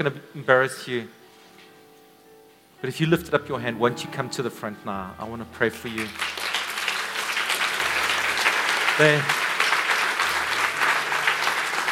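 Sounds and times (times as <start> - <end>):
speech: 0.0 - 1.2, 2.8 - 6.4, 9.0 - 9.4
brief tonal voice or note: 3.0 - 6.2
audience clapping: 5.5 - 11.8.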